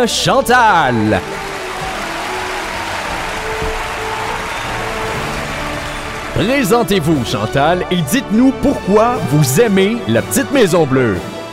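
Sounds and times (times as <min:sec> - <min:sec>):
speech: 0:00.0 - 0:01.5, 0:06.4 - 0:11.3
audience applause: 0:00.8 - 0:07.8.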